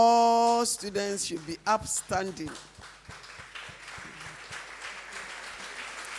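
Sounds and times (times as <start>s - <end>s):
speech: 0.0s - 2.7s
students applauding: 1.2s - 6.1s.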